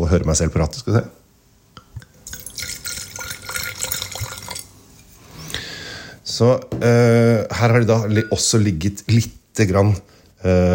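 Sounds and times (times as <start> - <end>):
speech: 0.0 - 1.2, 6.4 - 10.7
rosé wine poured into a glass: 2.0 - 5.2.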